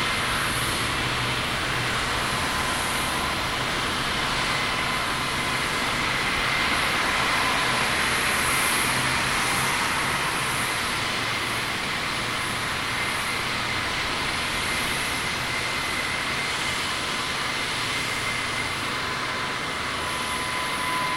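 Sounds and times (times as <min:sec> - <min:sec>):
airport tarmac ambience: 0:00.0 - 0:21.1.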